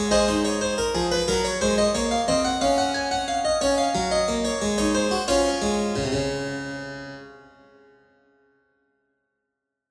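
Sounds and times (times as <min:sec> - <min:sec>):
harpsichord: 0:00.0 - 0:07.9.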